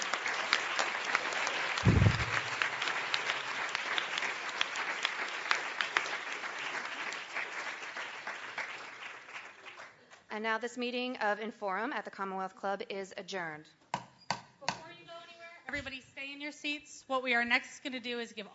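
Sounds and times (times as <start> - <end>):
audience applause: 0.0 - 10.0
low thump: 1.8 - 2.6
speech: 10.4 - 13.8, 15.7 - 18.5.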